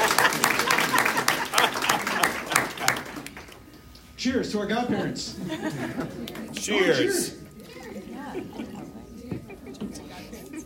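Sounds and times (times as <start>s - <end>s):
laughter: 0.0s - 3.3s, 5.3s - 7.0s, 7.7s - 10.6s
audience applause: 0.0s - 3.6s
speech: 4.2s - 7.4s.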